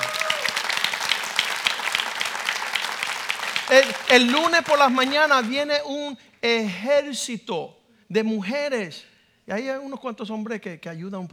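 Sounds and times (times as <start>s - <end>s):
audience applause: 0.0s - 5.6s
speech: 3.7s - 11.3s.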